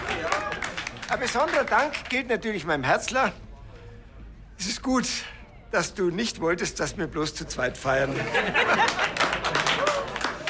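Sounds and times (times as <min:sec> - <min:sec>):
party guests clapping: 0:00.0 - 0:02.3, 0:08.7 - 0:10.4
speech: 0:01.1 - 0:03.4, 0:04.6 - 0:09.1
laughter: 0:08.0 - 0:10.4.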